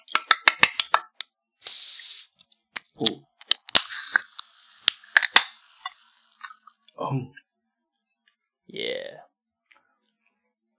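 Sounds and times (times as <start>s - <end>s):
Faygo Lemon Lime soda can clicks: 0.0s - 6.9s
Faygo Lemon Lime soda can fizzing: 1.6s - 2.4s, 3.0s - 7.0s
speech: 3.0s - 3.2s, 7.1s - 7.4s.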